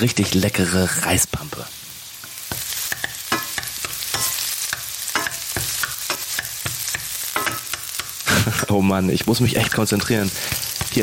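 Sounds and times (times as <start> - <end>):
speech: 0.0 - 1.8, 8.7 - 11.0
onions sizzling in a frying pan for a risotto: 0.0 - 11.0.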